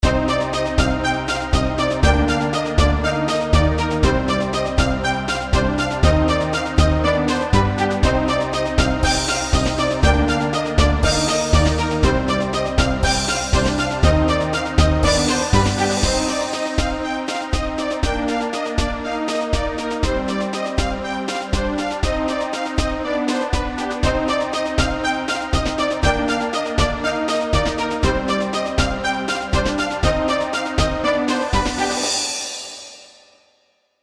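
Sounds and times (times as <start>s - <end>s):
depressed orchestral music: 0.0s - 32.7s.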